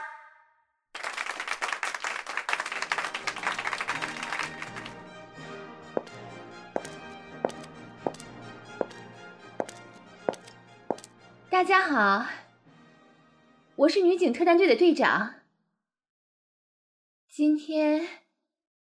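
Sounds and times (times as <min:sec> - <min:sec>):
warm audience applause: 0:01.0 - 0:05.0
speech: 0:11.6 - 0:12.4, 0:13.8 - 0:15.4, 0:17.4 - 0:18.2.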